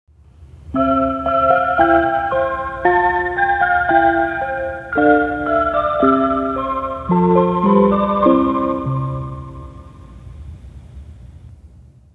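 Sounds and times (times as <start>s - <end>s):
chime: 0.8s - 10.3s.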